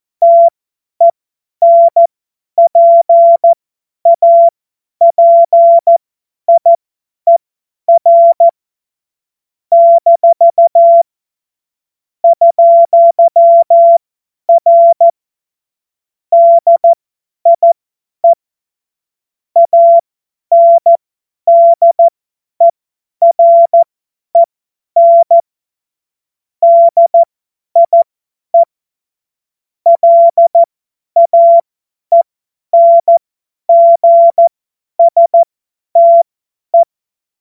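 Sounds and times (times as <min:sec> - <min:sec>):
CW Morse code beeps: 0:00.2 - 0:06.7, 0:07.3 - 0:08.6, 0:09.7 - 0:11.1, 0:12.2 - 0:15.2, 0:16.3 - 0:18.4, 0:19.6 - 0:25.4, 0:26.6 - 0:28.7, 0:29.9 - 0:32.2, 0:32.8 - 0:36.9.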